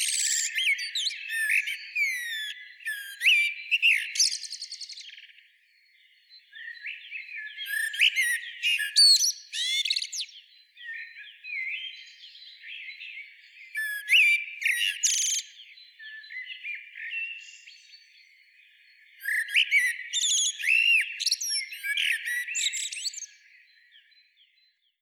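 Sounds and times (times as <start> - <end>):
common blackbird Turdus merula singing: 0.0 - 25.0.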